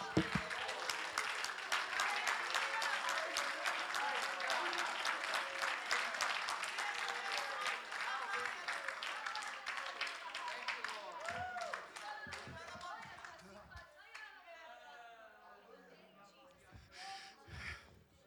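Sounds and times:
audience clapping hands: 0.0 - 13.6.

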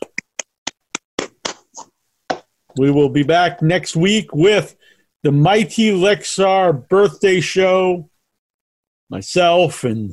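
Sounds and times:
hand claps: 0.0 - 1.7
speech: 2.8 - 8.1, 9.1 - 10.1.

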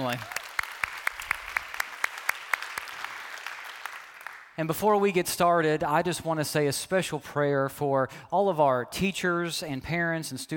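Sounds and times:
speech: 0.0 - 0.4, 4.6 - 10.5
church congregation clapping: 0.0 - 4.8.

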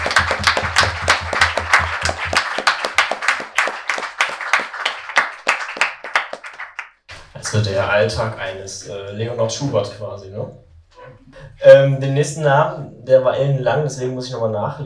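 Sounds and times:
audience applause: 0.0 - 7.0
speech: 7.6 - 14.8.

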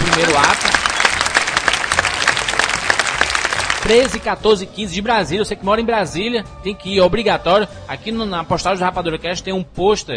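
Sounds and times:
audience applause: 0.0 - 4.3
speech: 3.9 - 10.1.

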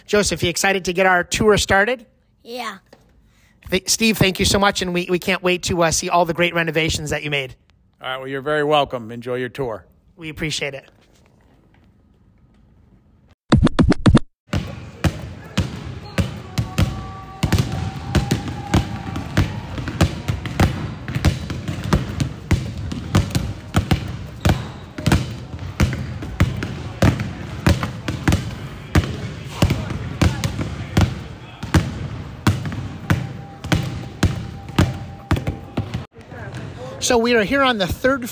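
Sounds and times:
speech: 0.0 - 2.9, 3.6 - 11.0, 37.1 - 38.3
basketball bouncing on an indoor court: 14.5 - 36.7.

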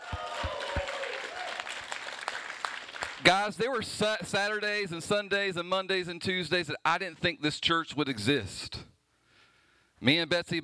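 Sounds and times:
audience clapping excitedly: 0.0 - 3.5
speech: 3.2 - 8.8, 10.0 - 10.6.

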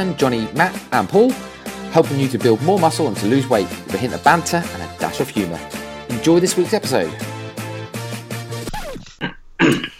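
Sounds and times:
speech: 0.0 - 7.3
man coughing: 8.9 - 9.9.

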